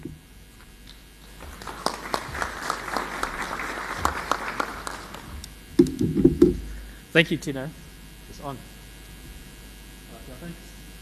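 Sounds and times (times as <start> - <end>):
audience applause: 1.3 - 5.5
speech: 6.0 - 6.3, 7.2 - 7.8, 8.4 - 8.7.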